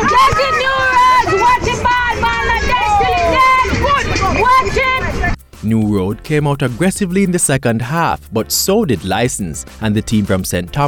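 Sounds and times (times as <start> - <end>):
supporters cheering at volleyball match: 0.0 - 5.4
speech: 5.7 - 10.8.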